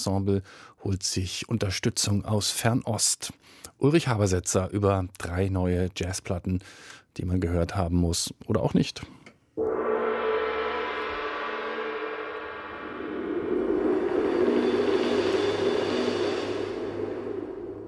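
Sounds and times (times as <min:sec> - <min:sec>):
speech: 0:00.0 - 0:09.7
gong ringing: 0:09.6 - 0:17.8
large cymbal roll: 0:09.6 - 0:17.8.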